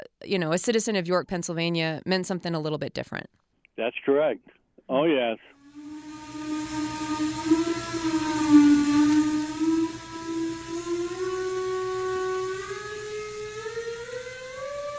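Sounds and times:
speech: 0.2s - 5.6s
factory whistle blowing: 5.6s - 14.9s.

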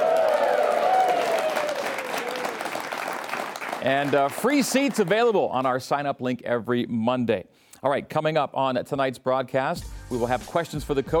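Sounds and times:
live studio audience cheering: 0.0s - 4.2s
live studio audience applauding at BYU Football with Kalani Sitake: 0.0s - 5.3s
speech: 3.8s - 11.1s.

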